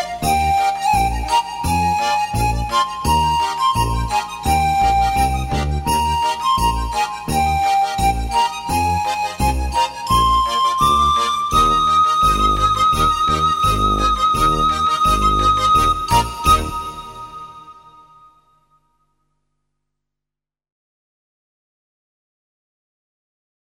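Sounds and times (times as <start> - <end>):
panpipes: 0.0 - 18.4.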